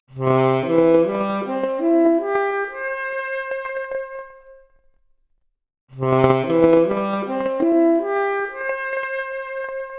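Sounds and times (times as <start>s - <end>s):
noisy 4-bit saxophone arpeggio: 0.3s - 4.2s, 6.1s - 9.9s.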